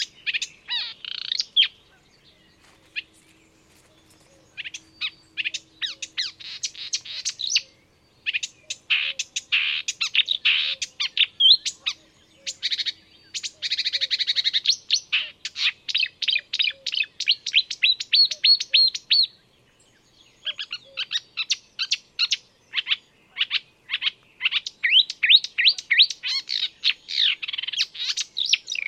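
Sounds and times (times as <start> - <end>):
marsh warbler singing: 0.0 - 28.8.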